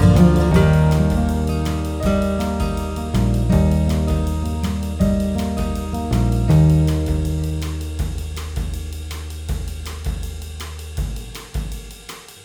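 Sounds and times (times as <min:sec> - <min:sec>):
acoustic country music loop: 0:00.0 - 0:08.0.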